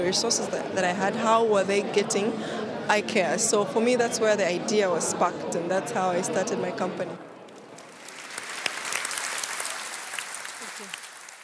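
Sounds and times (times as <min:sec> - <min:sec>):
speech: 0:00.0 - 0:07.3
friendly audience applause after a presentation: 0:07.6 - 0:11.4.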